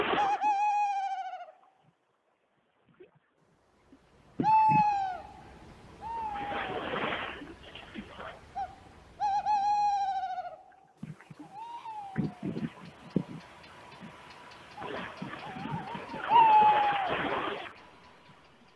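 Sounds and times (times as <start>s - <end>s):
tawny owl calling: 0.2s - 1.7s, 4.4s - 6.9s, 8.2s - 18.7s.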